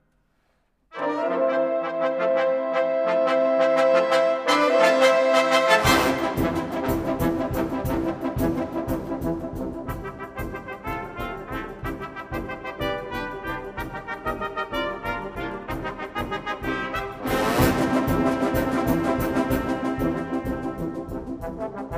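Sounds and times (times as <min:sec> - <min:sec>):
brass instruments: 0:00.9 - 0:21.9.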